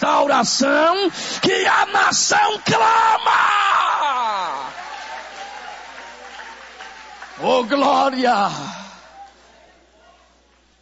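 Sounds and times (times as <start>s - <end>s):
speech: 0.0s - 4.8s, 7.4s - 8.8s
audience applauding: 4.1s - 9.8s.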